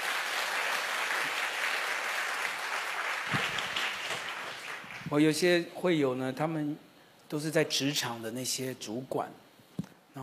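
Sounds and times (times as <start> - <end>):
audience clapping: 0.0 - 5.2
speech: 5.1 - 9.4.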